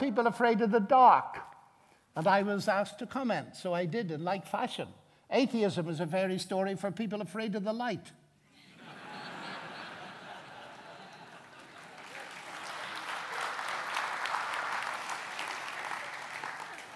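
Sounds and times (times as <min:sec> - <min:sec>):
speech: 0:00.0 - 0:01.5, 0:02.2 - 0:08.2
scattered laughter and chuckles: 0:08.5 - 0:12.2
audience clapping: 0:10.5 - 0:16.9.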